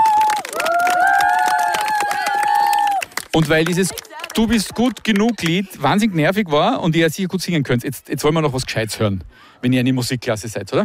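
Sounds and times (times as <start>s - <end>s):
scattered cheers: 0.0s - 3.2s
audience applause: 0.0s - 5.7s
speech: 3.4s - 10.8s.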